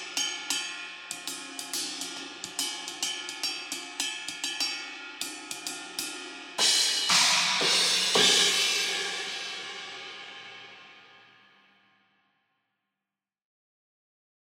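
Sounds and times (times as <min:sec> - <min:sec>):
hi-hat cymbals of a drum kit: 0:00.0 - 0:11.4.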